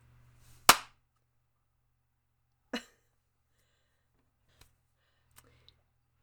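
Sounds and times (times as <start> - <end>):
hand clap: 0.7 - 0.9.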